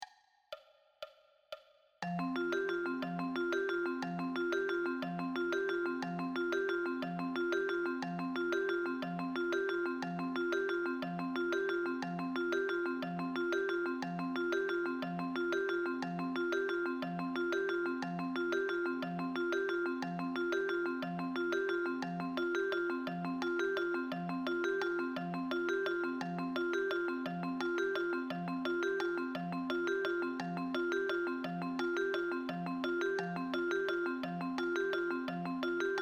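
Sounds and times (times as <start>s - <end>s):
vibraphone: 2.0s - 36.0s.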